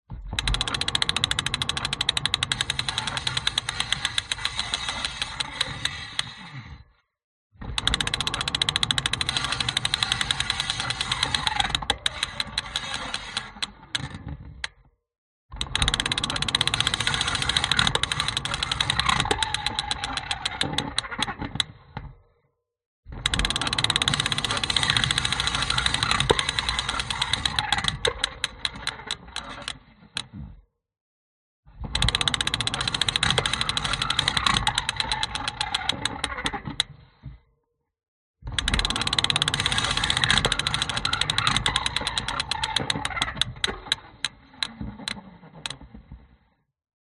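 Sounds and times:
broken bike wheel ratchet spinning on contact mic: 0:00.4 - 0:06.5, 0:07.8 - 0:14.1, 0:15.6 - 0:21.2, 0:23.2 - 0:29.8, 0:31.9 - 0:36.9, 0:38.5 - 0:44.8.

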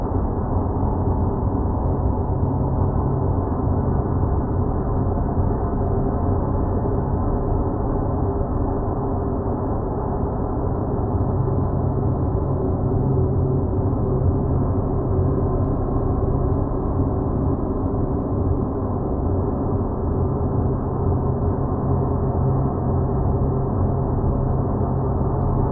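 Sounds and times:
dark airy sound design drone: 0:00.0 - 0:25.7.

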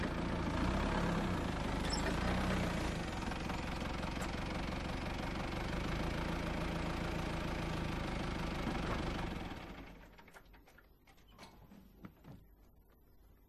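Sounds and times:
dump truck approaching and turning off: 0:00.0 - 0:10.2.

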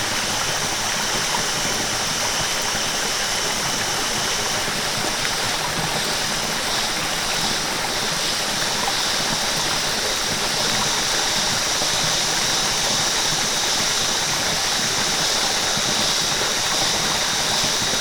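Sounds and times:
small rainforest stream in Australia: 0:00.0 - 0:17.9
small rainforest waterfall in Australia: 0:00.0 - 0:17.9.

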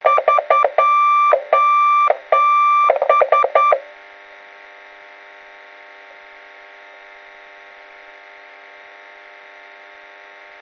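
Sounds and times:
SOS Morse code radio message: 0:00.0 - 0:03.8.

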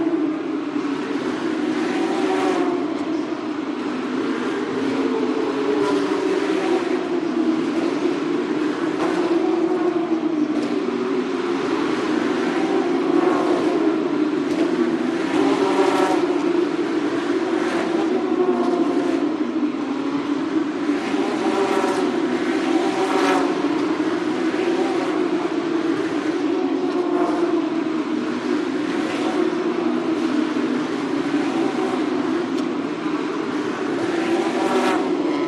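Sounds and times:
Porsche Carrera Challenge racing car engines in Singapore: 0:00.0 - 0:35.4.

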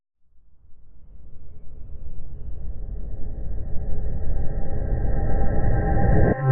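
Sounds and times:
swell: 0:02.0 - 0:06.5.

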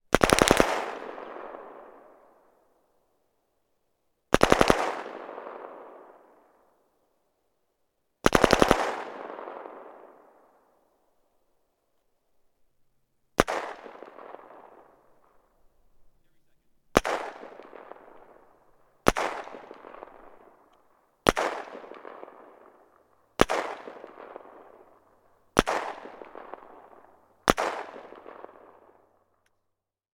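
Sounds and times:
AK-47 gunshots: 0:00.1 - 0:02.0, 0:04.3 - 0:06.1, 0:08.2 - 0:10.0, 0:13.4 - 0:15.5, 0:16.2 - 0:20.6, 0:21.2 - 0:25.0, 0:25.6 - 0:28.9.

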